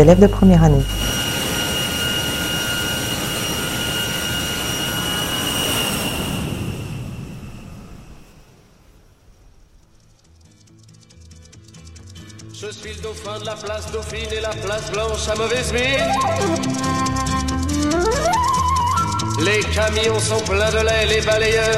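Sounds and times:
speech: 0.0s - 1.2s, 13.1s - 18.6s, 19.4s - 21.7s
jet airliner landing engine roar: 0.0s - 9.8s, 15.3s - 20.0s
jet airliner high turbine whine: 0.0s - 10.3s, 13.5s - 21.7s.

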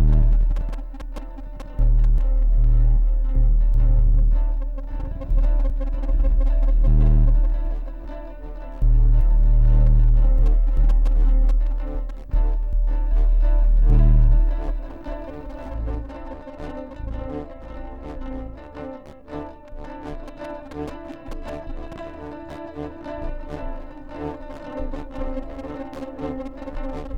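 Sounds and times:
bass noise: 0.0s - 16.3s.

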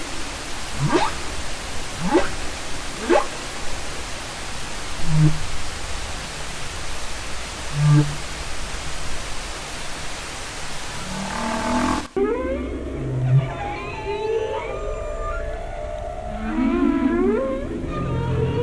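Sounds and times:
humpback whale song: 0.8s - 1.2s, 5.0s - 5.5s, 7.7s - 8.2s, 11.0s - 18.6s.

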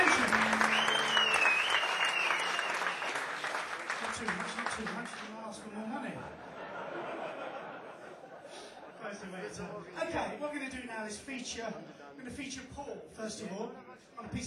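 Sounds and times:
audience applause: 0.0s - 5.5s
laughter: 6.3s - 9.8s
speech: 11.1s - 14.4s.

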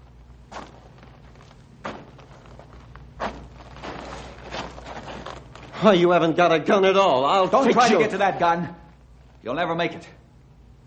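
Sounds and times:
footsteps stepping back: 0.0s - 6.0s
low steady hum: 0.0s - 10.8s
speech: 5.8s - 8.8s, 9.4s - 10.2s.

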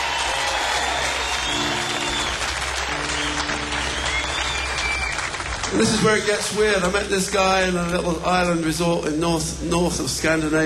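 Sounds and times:
faint cheering: 0.0s - 6.8s
audience applause for the drummer: 0.0s - 7.4s
speech: 5.7s - 10.6s.

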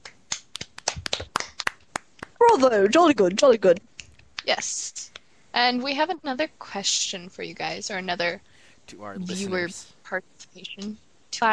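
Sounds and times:
round of applause: 0.3s - 2.6s
speech: 2.5s - 3.9s, 4.5s - 11.5s.

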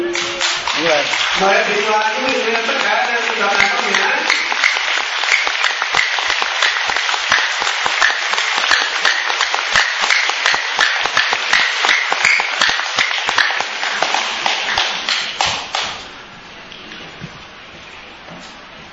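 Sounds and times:
speech: 0.1s - 4.1s
audience applause: 0.1s - 16.0s.

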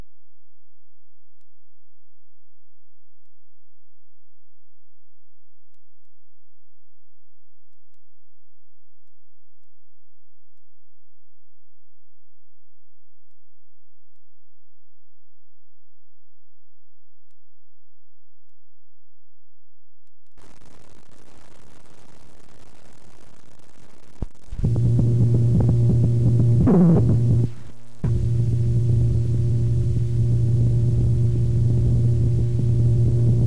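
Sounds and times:
weird noises: 20.4s - 33.4s.

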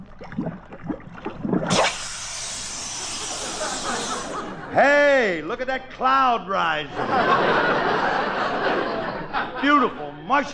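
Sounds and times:
hissing solution poured over jacket: 0.0s - 4.8s
laughter: 3.0s - 10.5s
speech: 4.8s - 8.3s, 9.6s - 10.5s.

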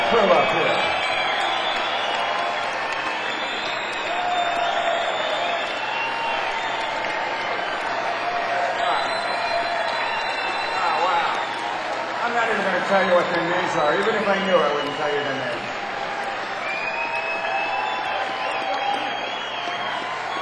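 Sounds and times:
applause and cheering for the crew: 0.0s - 20.4s
speech: 0.1s - 1.0s, 13.8s - 15.6s.

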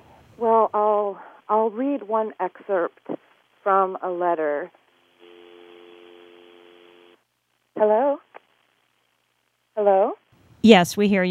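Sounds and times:
speech: 1.7s - 4.8s, 7.8s - 8.2s, 9.8s - 11.2s
telephone dial tone on the line: 5.2s - 7.2s.

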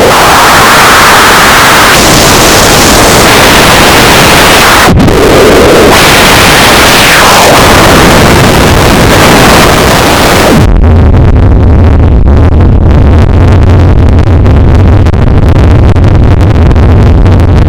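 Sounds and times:
analog noise music set: 0.0s - 17.6s.

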